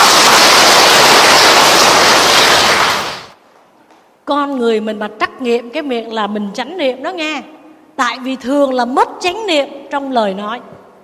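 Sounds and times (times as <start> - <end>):
round of applause: 0.0 - 3.4
speech: 4.6 - 10.8.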